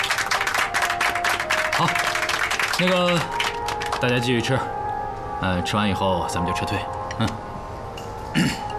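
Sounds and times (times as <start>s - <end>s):
applause at a university sports team's dinner: 0.0s - 4.2s
speech: 1.8s - 2.1s, 2.8s - 3.4s, 4.0s - 4.8s, 5.4s - 7.5s, 8.4s - 8.6s.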